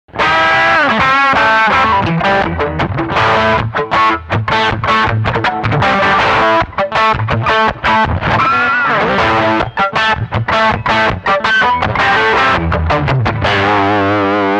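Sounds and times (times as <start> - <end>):
heavy riff: 0.1 - 14.5.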